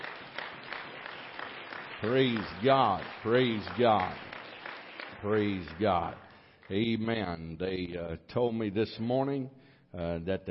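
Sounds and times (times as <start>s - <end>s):
audience applauding guests with hand claps: 0.0s - 7.3s
speech: 2.0s - 4.3s, 5.2s - 10.4s.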